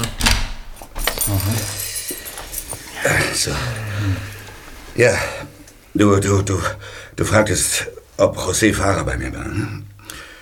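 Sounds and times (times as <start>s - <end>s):
keys jangling and clicking locking an office door: 0.0s - 4.5s
speech: 1.3s - 1.9s, 3.0s - 4.4s, 5.0s - 9.9s.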